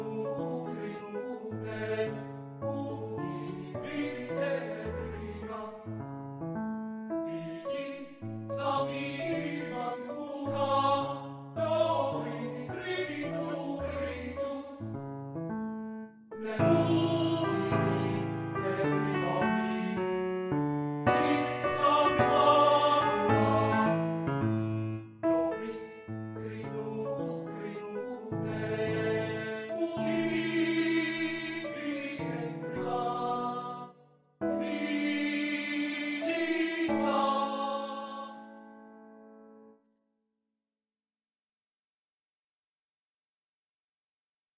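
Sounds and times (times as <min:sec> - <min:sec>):
person singing art song: 0:00.0 - 0:02.1, 0:02.7 - 0:05.8, 0:07.3 - 0:14.8, 0:16.4 - 0:20.1, 0:21.1 - 0:23.9, 0:26.4 - 0:33.9, 0:34.5 - 0:38.5
piano: 0:00.0 - 0:39.8.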